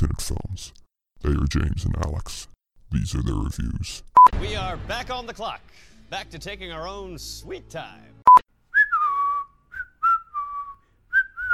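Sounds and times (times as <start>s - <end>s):
speech: 0.0s - 8.4s
person whistling a jolly tune: 8.7s - 11.5s.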